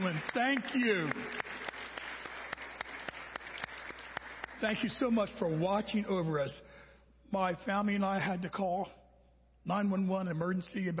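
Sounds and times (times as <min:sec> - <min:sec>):
speech: 0:00.0 - 0:01.4, 0:04.6 - 0:09.0, 0:09.6 - 0:10.9
audience applause: 0:00.0 - 0:04.9.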